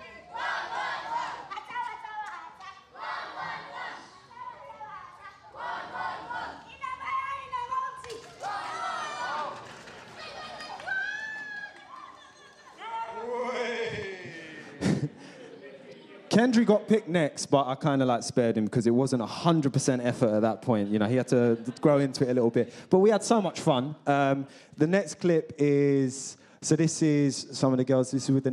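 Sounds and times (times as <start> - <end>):
children playing Sierra Leonean version of Duck, Duck, Goose: 0.0 - 16.3
laughter: 9.1 - 16.3, 20.6 - 22.5
speech: 16.4 - 28.5.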